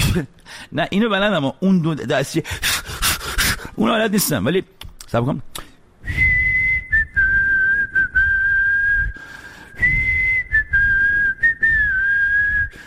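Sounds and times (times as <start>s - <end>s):
speech: 0.1s - 2.7s, 3.8s - 5.6s
person whistling: 6.0s - 12.8s.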